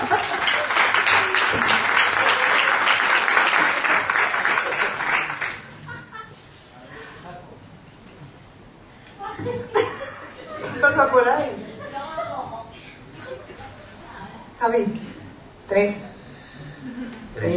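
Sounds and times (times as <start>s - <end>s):
laughter: 0.0s - 2.9s, 3.5s - 6.6s, 9.2s - 14.0s, 16.7s - 17.4s
applause: 0.0s - 5.9s
speech: 15.8s - 16.0s.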